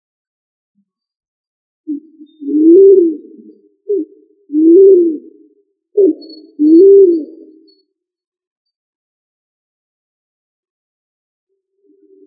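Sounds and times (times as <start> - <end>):
pigeon cooing: 1.9 - 5.4, 6.0 - 7.7.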